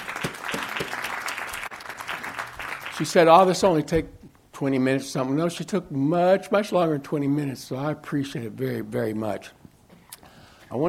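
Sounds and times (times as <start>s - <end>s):
crowd clapping: 0.0s - 3.7s
speech: 3.0s - 9.6s.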